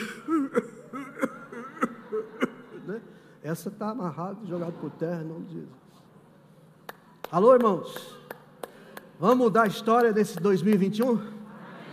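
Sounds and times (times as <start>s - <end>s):
demonstrated dry cough: 0.0s - 2.9s
speech: 3.5s - 5.8s, 7.3s - 8.2s, 9.2s - 11.3s.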